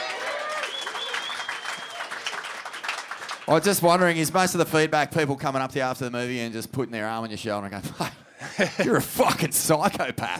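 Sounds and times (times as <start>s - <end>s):
audience applause: 0.0s - 4.1s
speech: 3.5s - 10.3s
laughter: 7.8s - 9.6s.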